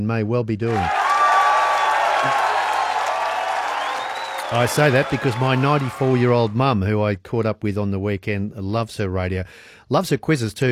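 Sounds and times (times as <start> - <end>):
speech: 0.0 - 1.0, 2.2 - 2.5, 4.5 - 10.7
round of applause: 0.7 - 6.6.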